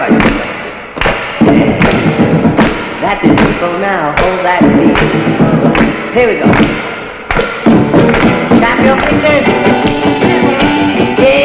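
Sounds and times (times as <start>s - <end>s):
crowd stomping feet: 0.0s - 11.4s
speech: 3.1s - 6.8s, 8.8s - 9.7s.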